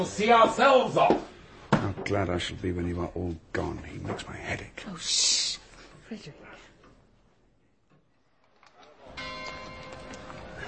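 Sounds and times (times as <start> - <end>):
speech: 0.0 - 6.6
clock striking ten: 9.1 - 10.6.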